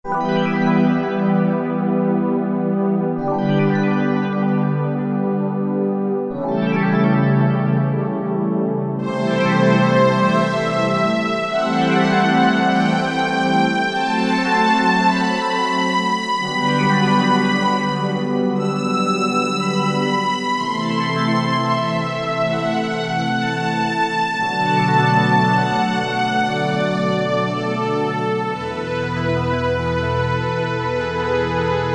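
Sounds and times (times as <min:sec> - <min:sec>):
Korg T3 synthesizer: 0:00.0 - 0:31.9.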